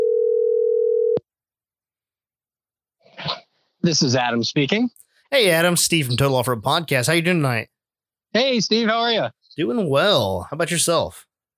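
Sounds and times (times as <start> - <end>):
telephone dialing tone: 0.0 - 1.2
speech: 3.8 - 7.7, 8.3 - 11.3.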